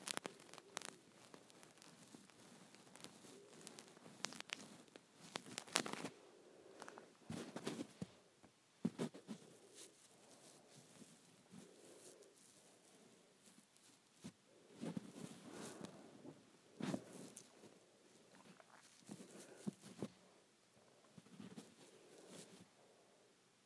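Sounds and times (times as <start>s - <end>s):
hands playing with hair: 0.0s - 8.2s, 8.8s - 20.4s, 21.0s - 22.7s.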